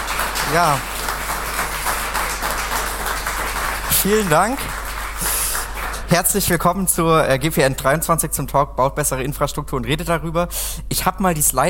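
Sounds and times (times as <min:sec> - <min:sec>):
audience applause welcoming a speaker at a conference talk: 0:00.0 - 0:06.8
speech: 0:00.5 - 0:00.9, 0:04.0 - 0:04.8, 0:06.1 - 0:11.6.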